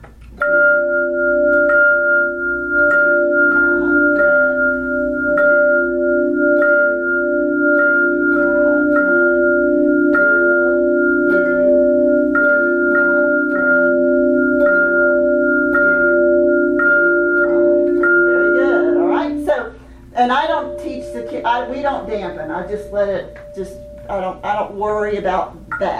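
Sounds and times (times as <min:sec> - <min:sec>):
hand chimes playing: 0:00.4 - 0:25.9.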